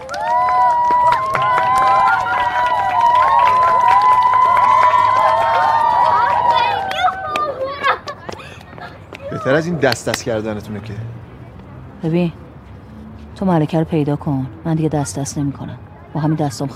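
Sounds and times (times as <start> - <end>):
scattered claps: 0.0 - 9.2, 9.8 - 10.3
crowd cheering: 0.0 - 10.2
speech: 9.4 - 11.2, 12.0 - 12.4, 13.4 - 16.7.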